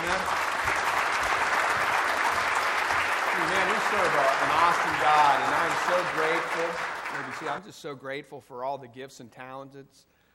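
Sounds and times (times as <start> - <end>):
church congregation applauding: 0.0 - 7.7
speech: 3.9 - 10.2.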